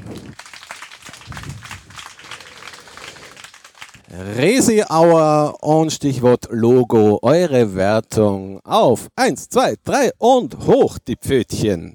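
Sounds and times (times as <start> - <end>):
audience applause: 0.0 - 4.9
speech: 4.2 - 11.9.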